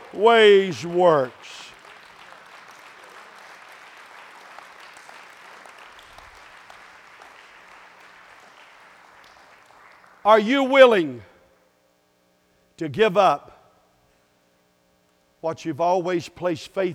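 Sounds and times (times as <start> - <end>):
crowd hand clapping: 0.0 - 10.4
speech: 0.1 - 1.6, 10.3 - 11.3, 12.8 - 13.6, 15.4 - 16.9.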